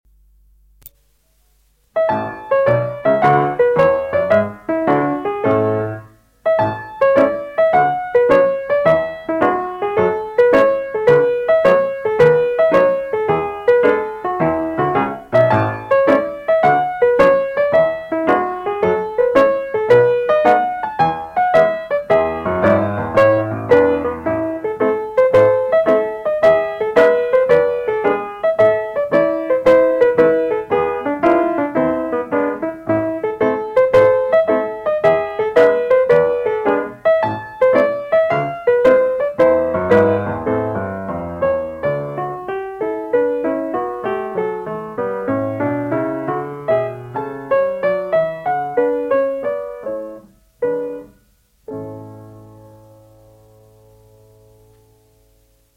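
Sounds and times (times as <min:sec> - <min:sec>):
classical dance music for instep extensions: 0:01.8 - 0:55.7.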